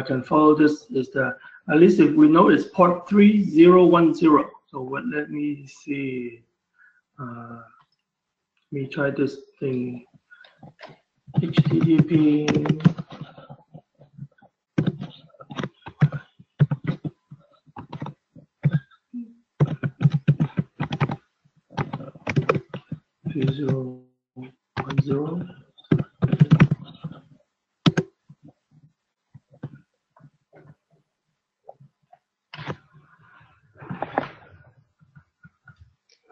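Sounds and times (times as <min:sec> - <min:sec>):
speech: 0:00.0 - 0:06.5, 0:07.2 - 0:07.8, 0:08.7 - 0:13.2
typing an IP address on a computer keyboard: 0:11.4 - 0:13.4, 0:17.8 - 0:18.8, 0:19.6 - 0:21.2, 0:21.8 - 0:23.8, 0:24.8 - 0:25.2, 0:25.8 - 0:27.2, 0:27.9 - 0:28.1.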